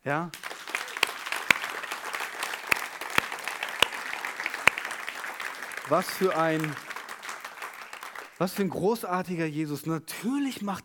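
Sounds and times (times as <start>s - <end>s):
speech: 0.0s - 0.5s, 5.9s - 6.9s, 8.4s - 10.8s
audience applause: 0.3s - 8.5s.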